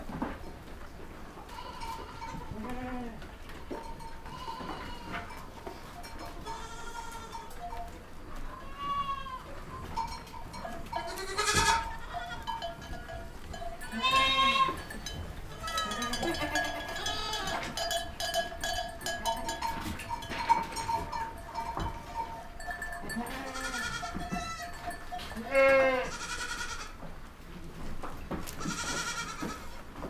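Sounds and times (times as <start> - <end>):
goats bleating: 1.5 - 3.3, 3.9 - 7.6, 8.4 - 9.9, 10.5 - 27.0, 28.6 - 29.8
clanking and rattling: 10.0 - 25.6.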